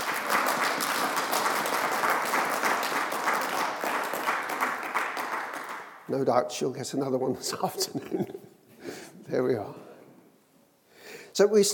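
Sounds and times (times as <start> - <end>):
audience applauding: 0.0 - 6.1
speech: 6.1 - 8.4, 9.3 - 9.8, 11.4 - 11.7.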